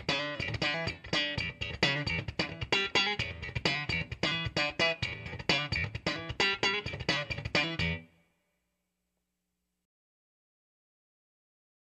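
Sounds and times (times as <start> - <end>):
funky Stratocaster electric guitar: 0.0 - 8.0.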